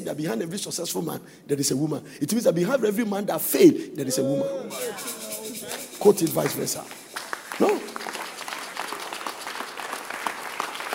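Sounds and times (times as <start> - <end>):
speech: 0.1 - 5.2, 6.0 - 7.8
audience clapping: 5.7 - 10.9.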